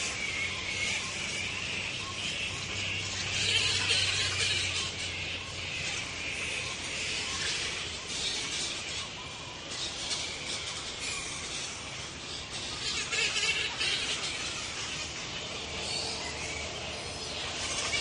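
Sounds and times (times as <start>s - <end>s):
morning soundscape in Bellingen: 0.0s - 17.9s.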